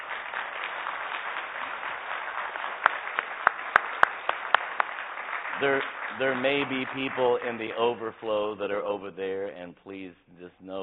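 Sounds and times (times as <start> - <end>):
audience applause for veterans standing: 0.0 - 8.4
speech: 5.6 - 10.8.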